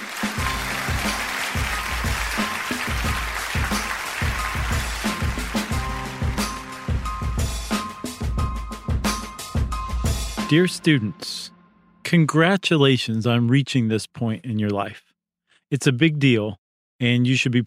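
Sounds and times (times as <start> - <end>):
audience applause at a commencement ceremony: 0.0 - 7.0
loud music with a heavy, regular bass beat: 0.3 - 10.6
speech: 10.5 - 11.4, 12.1 - 15.1, 15.7 - 17.6.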